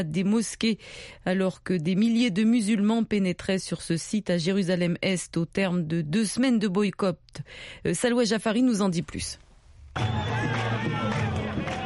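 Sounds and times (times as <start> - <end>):
speech: 0.0 - 9.4, 10.0 - 10.6
jubilant crowd shouting at the Al-Aqsa mosque esplanade entrance in Jerusalem: 10.0 - 11.8.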